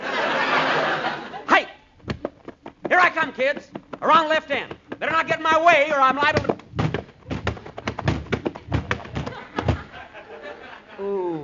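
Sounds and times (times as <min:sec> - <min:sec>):
laughter: 0:00.0 - 0:01.6, 0:09.0 - 0:11.4
dull thuds of a boy tackling another in children's football: 0:02.0 - 0:05.3, 0:06.2 - 0:10.0
speech: 0:03.2 - 0:06.5.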